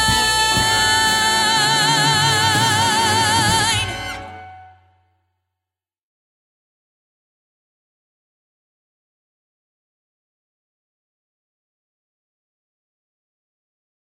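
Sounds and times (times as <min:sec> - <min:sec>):
women with northern English accents singing: 0:00.0 - 0:04.5.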